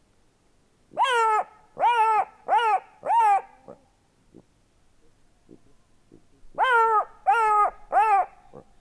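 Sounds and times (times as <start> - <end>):
black-backed jackal Canis mesomelas barking: 0.9 - 3.8, 6.1 - 8.7.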